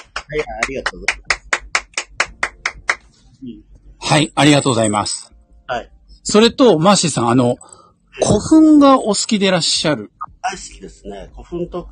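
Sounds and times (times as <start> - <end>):
low voice murmur: 0.0 - 1.2, 10.4 - 11.8
hand clapping away from microphone: 0.0 - 3.2
speech: 0.3 - 1.3, 3.4 - 11.8.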